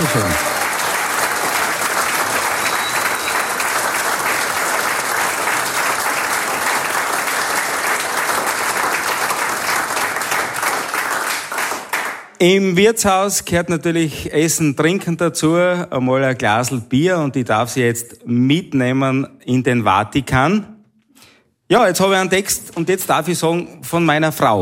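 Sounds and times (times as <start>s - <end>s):
audience applause in a tavern hall: 0.0s - 12.3s
speech: 0.1s - 0.5s, 12.4s - 20.7s, 21.7s - 24.6s.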